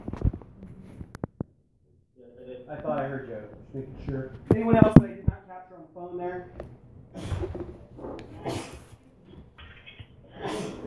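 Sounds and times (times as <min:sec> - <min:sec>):
speech: 0:02.7 - 0:07.7
loud breathy snorting exhalations: 0:07.1 - 0:10.8
sneeze: 0:07.2 - 0:07.6, 0:08.3 - 0:09.0, 0:09.8 - 0:10.8.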